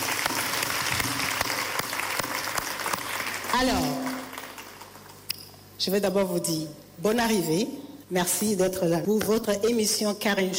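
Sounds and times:
audience applause: 0.0 - 5.2
speech: 3.6 - 4.0, 5.8 - 10.5.

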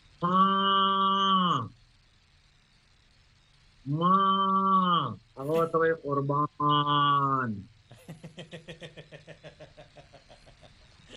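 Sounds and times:
calf mooing to its mother cow: 0.2 - 1.7, 3.9 - 5.0
speech: 5.6 - 7.8
laughter: 7.9 - 11.1.

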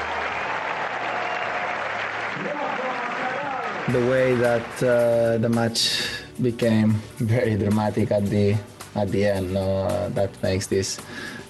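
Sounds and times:
applause for tennis player in New York: 0.0 - 5.4
speech: 3.9 - 11.4.

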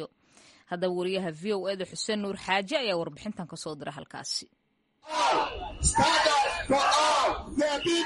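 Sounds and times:
speech: 0.0 - 8.0
crowd of protesters shouting demands for immigrant rights: 5.0 - 8.0.

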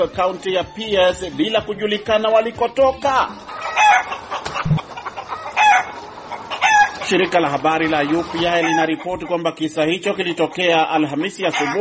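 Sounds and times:
speech: 0.0 - 4.1, 7.1 - 11.7
chickens clucking on city streets in Puyallup: 3.2 - 11.7
rooster crowing among chickens roaming city streets in Puyallup, Pierce County, Washington: 3.5 - 7.1, 8.5 - 9.0, 11.5 - 11.7.

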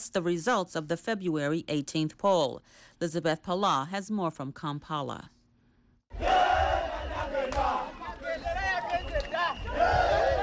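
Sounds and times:
speech: 0.0 - 5.4
celebrating crowd cheering: 6.1 - 10.4.

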